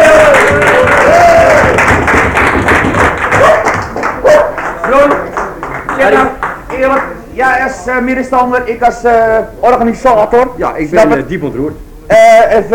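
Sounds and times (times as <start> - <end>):
audience applause: 0.0 - 7.2
speech: 7.9 - 12.7.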